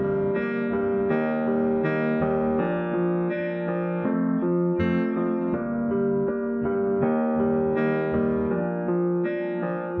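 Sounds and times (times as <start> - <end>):
instrumental music without drums: 0.0 - 9.9.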